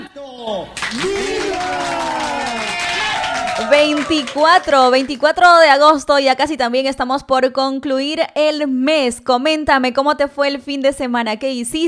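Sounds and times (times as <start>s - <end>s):
speech: 0.2s - 1.8s, 3.7s - 11.8s
applause: 0.8s - 5.6s.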